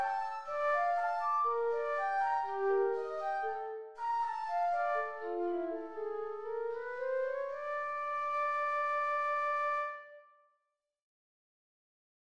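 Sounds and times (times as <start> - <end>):
slow flute: 0.0 - 10.3.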